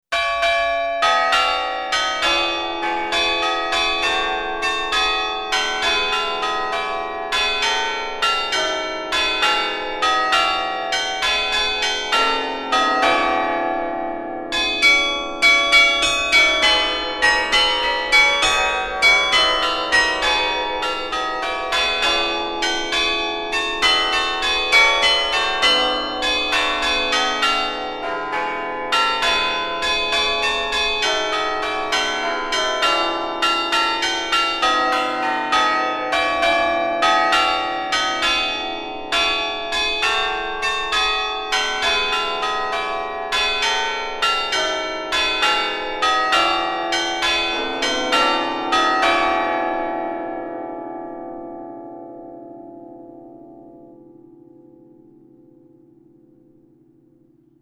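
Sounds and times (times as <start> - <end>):
carillon bells: 0.1 - 55.3.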